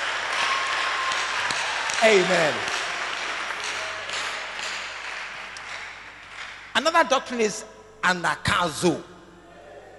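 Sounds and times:
audience clapping: 0.0s - 7.1s
speech: 2.0s - 2.7s, 6.8s - 9.1s.

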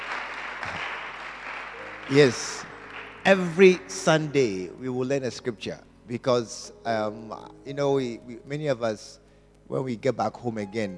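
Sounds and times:
audience clapping: 0.0s - 4.4s
speech: 2.1s - 10.9s.

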